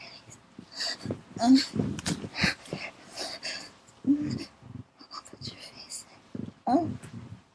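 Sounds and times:
woman vocalizing: 0.7 - 4.9, 6.3 - 7.3.

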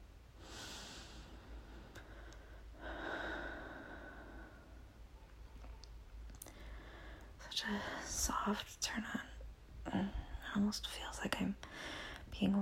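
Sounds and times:
person breathing: 0.4 - 5.0, 6.4 - 8.2, 11.6 - 12.3
speech: 7.6 - 9.3, 9.9 - 12.6.

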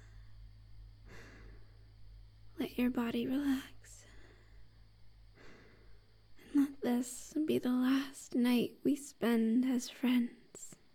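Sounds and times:
soft breathing: 0.0 - 2.2, 3.4 - 6.6
steady low hum: 0.0 - 8.2
speech: 2.6 - 4.0, 6.8 - 10.4.

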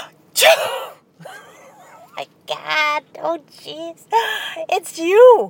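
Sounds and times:
sneeze: 0.4 - 1.0
speech: 3.6 - 5.4.

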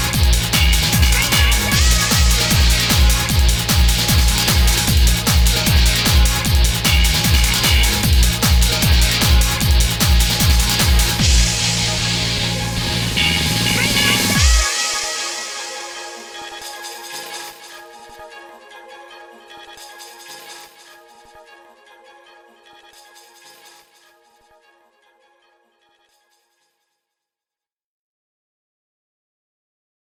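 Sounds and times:
rock music: 0.0 - 14.7.

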